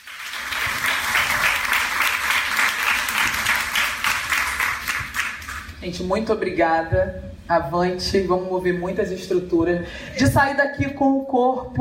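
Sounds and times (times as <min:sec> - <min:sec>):
audience applause: 0:00.0 - 0:05.7
speech: 0:05.8 - 0:11.7.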